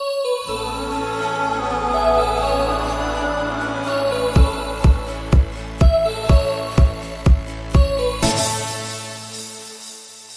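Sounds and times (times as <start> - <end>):
disco music: 0.5 - 10.3.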